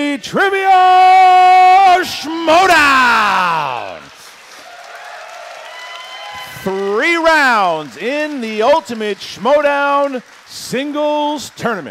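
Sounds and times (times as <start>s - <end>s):
speech: 0.0s - 3.4s, 6.6s - 11.8s
audience applause: 3.0s - 11.8s.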